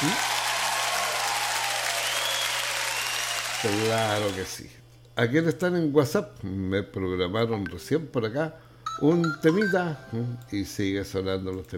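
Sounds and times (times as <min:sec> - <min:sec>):
crowd clapping: 0:00.0 - 0:04.5
low steady hum: 0:02.2 - 0:11.7
speech: 0:03.6 - 0:11.7.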